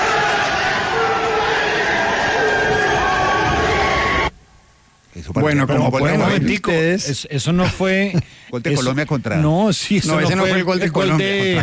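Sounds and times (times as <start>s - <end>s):
legislators applauding and cheering after vote: 0.0s - 4.3s
speech: 5.4s - 11.6s.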